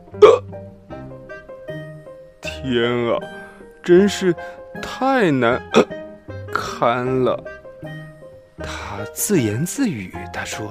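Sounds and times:
voice imitating hiccups: 0:00.1 - 0:00.6, 0:05.6 - 0:06.0
speech: 0:00.1 - 0:00.8, 0:02.6 - 0:05.9, 0:06.8 - 0:07.5, 0:08.6 - 0:10.6.

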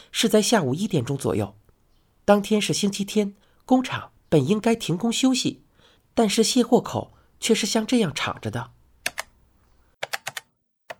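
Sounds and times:
speech: 0:00.1 - 0:01.6, 0:02.3 - 0:05.6, 0:06.2 - 0:08.8
computer keyboard tapping: 0:09.0 - 0:09.3, 0:10.0 - 0:10.9.

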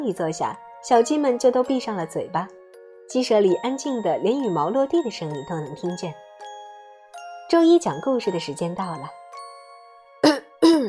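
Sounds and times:
speech: 0:00.0 - 0:06.2, 0:07.5 - 0:09.2
throat clearing: 0:10.2 - 0:10.8.

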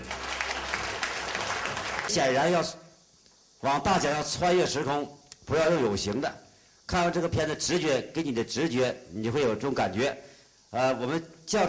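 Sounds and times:
audience applause: 0:00.0 - 0:02.2
speech: 0:02.1 - 0:02.8, 0:03.6 - 0:11.6.

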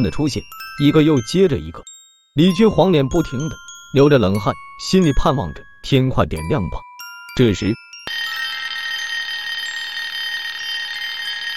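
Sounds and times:
speech: 0:00.0 - 0:08.2
shrill telephone ringing: 0:08.1 - 0:11.5.

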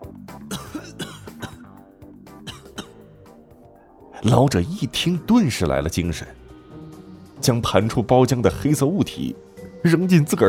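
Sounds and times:
weak cough: 0:00.5 - 0:01.8, 0:02.4 - 0:03.2
speech: 0:04.2 - 0:06.4, 0:07.4 - 0:10.4.

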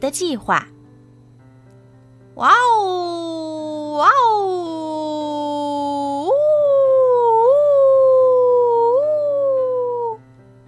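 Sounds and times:
speech: 0:00.0 - 0:00.7, 0:02.4 - 0:03.3, 0:04.0 - 0:04.8
ghostly howling voice: 0:02.4 - 0:10.2.

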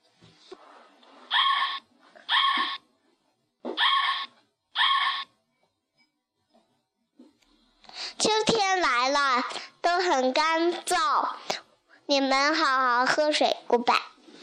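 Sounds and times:
fox calls: 0:01.3 - 0:02.8, 0:03.8 - 0:05.3
speech: 0:08.5 - 0:14.1.

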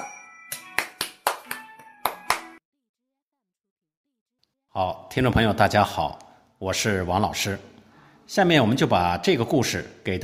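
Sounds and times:
applause: 0:00.6 - 0:02.6
speech: 0:04.8 - 0:10.2.

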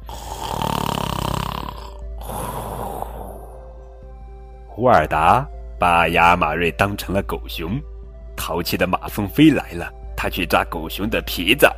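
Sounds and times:
snoring: 0:00.0 - 0:03.6
speech: 0:04.8 - 0:11.7.

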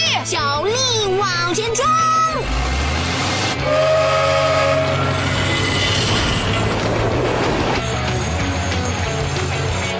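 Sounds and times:
speech: 0:00.2 - 0:02.7
train rumbling: 0:02.5 - 0:09.9
train whistle: 0:03.6 - 0:06.1.

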